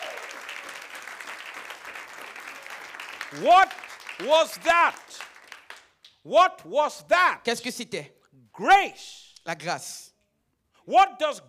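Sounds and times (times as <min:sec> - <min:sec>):
audience clapping: 0:00.0 - 0:06.2
speech: 0:03.3 - 0:05.2, 0:06.2 - 0:10.1, 0:10.9 - 0:11.4.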